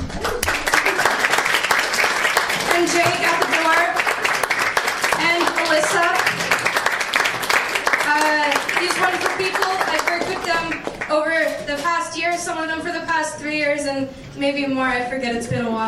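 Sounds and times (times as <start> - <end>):
audience applause and clapping: 0.0 - 11.1
speech: 11.7 - 15.8.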